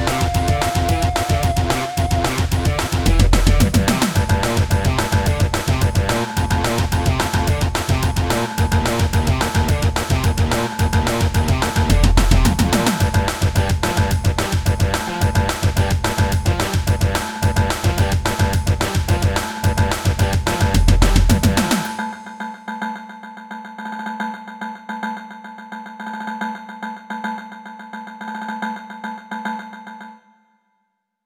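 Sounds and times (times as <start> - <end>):
upbeat music: 0.0 - 22.0.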